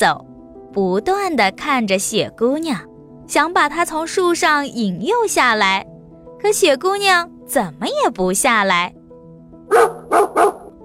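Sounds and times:
speech: 0:00.0 - 0:09.0, 0:09.7 - 0:10.5
dog barking in the woods: 0:09.7 - 0:10.8.

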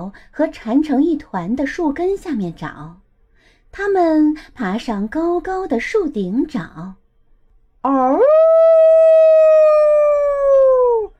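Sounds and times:
speech: 0:00.0 - 0:03.0, 0:03.7 - 0:07.0, 0:07.8 - 0:08.9
wolf howling: 0:07.9 - 0:11.1.

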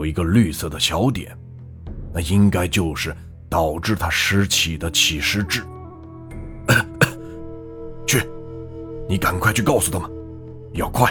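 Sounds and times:
speech: 0:00.0 - 0:01.5, 0:02.1 - 0:05.8, 0:08.1 - 0:08.3, 0:09.1 - 0:11.0
man coughing: 0:06.7 - 0:07.4.

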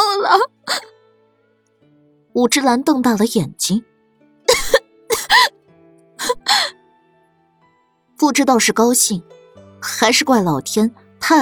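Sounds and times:
young woman coughing, choking on blood: 0:00.0 - 0:00.8, 0:04.5 - 0:05.5, 0:06.2 - 0:06.7
speech: 0:00.3 - 0:00.8, 0:02.4 - 0:03.9, 0:08.2 - 0:11.4.

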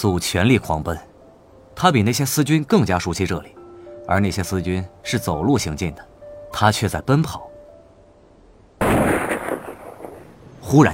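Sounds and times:
speech: 0:00.0 - 0:01.1, 0:01.8 - 0:07.5, 0:10.7 - 0:10.9
intense gunfire in the night: 0:08.8 - 0:10.4.

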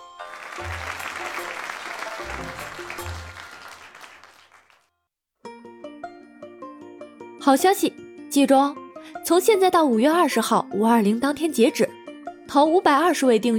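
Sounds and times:
applause: 0:00.0 - 0:04.9
speech: 0:00.6 - 0:03.4, 0:07.4 - 0:11.8, 0:12.5 - 0:13.5.

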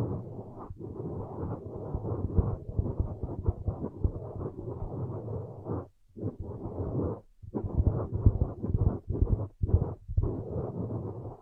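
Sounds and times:
ear massage muffled rubbing and rustling: 0:00.0 - 0:11.4.

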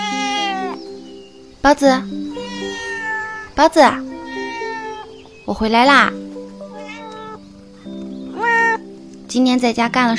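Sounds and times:
kitten meowing: 0:00.0 - 0:00.8, 0:02.3 - 0:05.3, 0:06.6 - 0:07.4, 0:08.3 - 0:08.9
speech: 0:01.6 - 0:02.4, 0:03.6 - 0:04.1, 0:05.5 - 0:06.2, 0:09.3 - 0:10.1.

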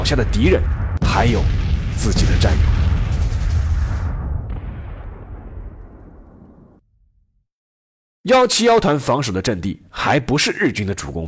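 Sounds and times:
machine guns, rifles and pistols firing at the 1943 Battle of Changde: 0:00.0 - 0:06.8
speech: 0:00.1 - 0:02.8, 0:08.2 - 0:11.2.

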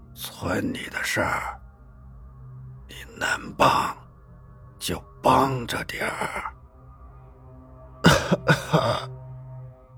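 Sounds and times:
speech: 0:00.2 - 0:01.6, 0:03.0 - 0:04.0, 0:04.8 - 0:06.5
frail old grandfather coughing weakly: 0:08.0 - 0:09.1.

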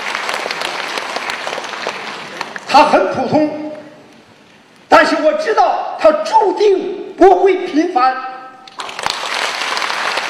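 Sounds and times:
applause: 0:00.0 - 0:02.7, 0:08.7 - 0:10.2
speech: 0:02.7 - 0:03.6, 0:05.0 - 0:08.3.

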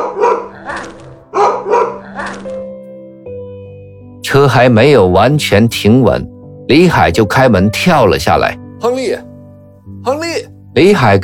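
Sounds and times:
dog growling: 0:00.0 - 0:02.7
speech: 0:04.3 - 0:09.3, 0:10.0 - 0:11.2.

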